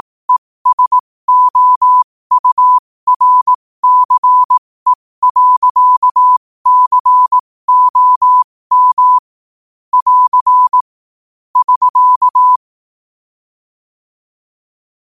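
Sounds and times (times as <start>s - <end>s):
morse code at 5 wpm: 0.6s - 9.3s, 9.9s - 10.8s, 11.6s - 12.6s.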